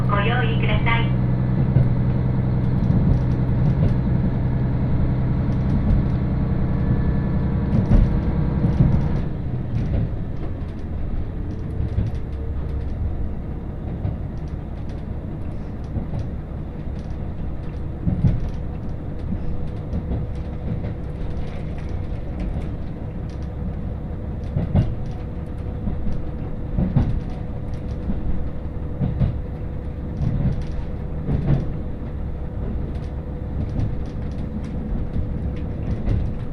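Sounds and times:
Hakodate Main Line Sawara branch train rumbling, heard from inside the car: 0:00.0 - 0:36.5
wheels clicking over rail joints: 0:07.7 - 0:13.2, 0:13.9 - 0:36.5.

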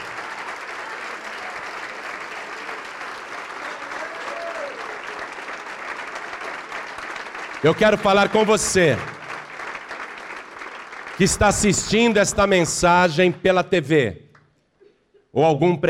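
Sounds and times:
church audience applauding: 0:00.0 - 0:13.0
speech: 0:07.6 - 0:09.2, 0:11.2 - 0:14.2, 0:15.4 - 0:15.8.

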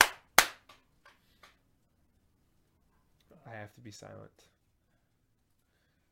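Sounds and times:
hand claps: 0:00.0 - 0:00.8
speech: 0:03.6 - 0:04.6.

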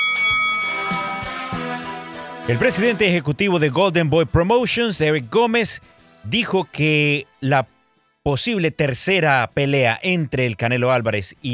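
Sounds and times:
boxing bell ringing: 0:00.0 - 0:01.6
speech: 0:02.5 - 0:11.5.

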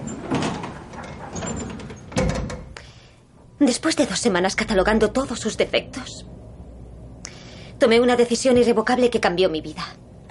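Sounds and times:
elevator door closing: 0:00.0 - 0:02.8
speech: 0:03.6 - 0:06.4, 0:07.8 - 0:10.0.

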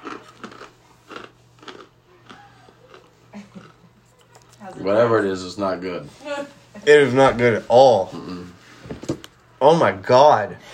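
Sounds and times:
biting and chewing durian fruit snack: 0:00.0 - 0:04.7
speech: 0:04.7 - 0:08.4, 0:09.6 - 0:10.7.

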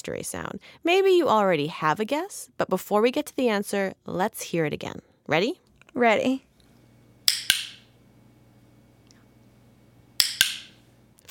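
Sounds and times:
speech: 0:00.0 - 0:06.5
dog training clicker clicking: 0:07.3 - 0:07.8, 0:10.2 - 0:10.7.

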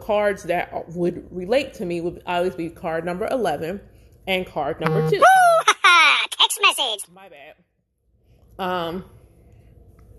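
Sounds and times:
speech: 0:00.1 - 0:05.5, 0:06.9 - 0:07.7, 0:08.6 - 0:09.2
phone text message notification tone: 0:04.8 - 0:05.2.

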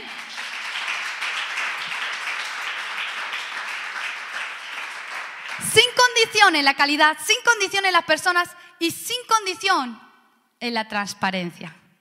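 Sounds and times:
audience applause: 0:00.0 - 0:05.6
speech: 0:05.6 - 0:10.0, 0:10.6 - 0:11.8.

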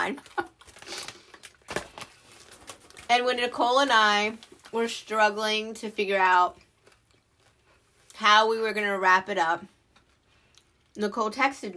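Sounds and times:
speech: 0:00.0 - 0:00.4, 0:03.1 - 0:06.6, 0:08.2 - 0:09.7, 0:11.0 - 0:11.7
crinkly plastic popcorn bags rustling: 0:00.0 - 0:05.1.

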